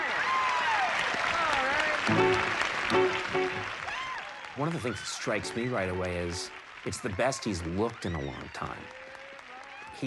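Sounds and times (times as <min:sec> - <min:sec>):
studio audience applause: 0:00.0 - 0:10.0
speech: 0:02.1 - 0:02.4, 0:04.6 - 0:09.0.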